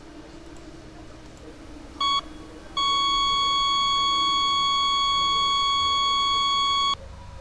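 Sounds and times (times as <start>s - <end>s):
heart monitor beep: 2.0s - 7.0s.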